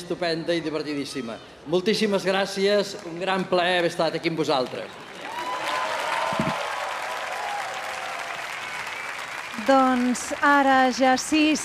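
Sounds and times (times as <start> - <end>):
speech: 0.0 - 5.1, 9.7 - 11.6
concert audience ovation: 4.8 - 10.9.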